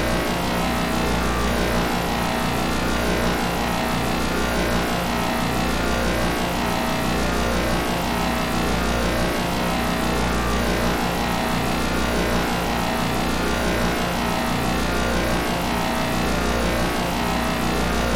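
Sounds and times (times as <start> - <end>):
sci-fi force field energy source hum: 0.0 - 18.1.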